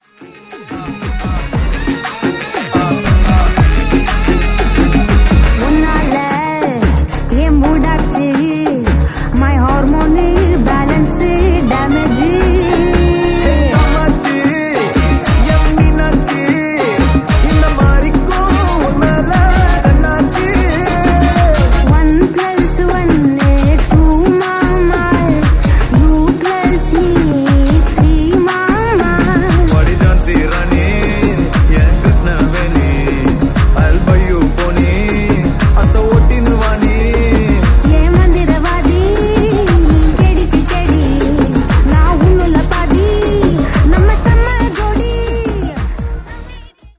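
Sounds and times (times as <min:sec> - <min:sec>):
background music ringtone: 0:00.0 - 0:46.9.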